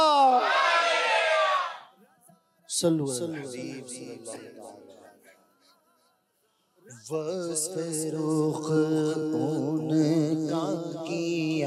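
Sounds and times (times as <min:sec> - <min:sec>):
crowd chanting a slogan at a devotional poetry recital: 0:00.0 - 0:02.0
single voice reciting devotional verse: 0:02.0 - 0:11.6
speech: 0:02.8 - 0:04.9, 0:06.9 - 0:11.6.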